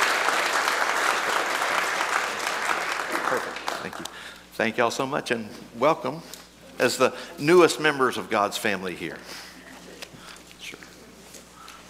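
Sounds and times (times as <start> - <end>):
church congregation applauding new members: 0.0 - 4.2
speech: 3.3 - 9.5.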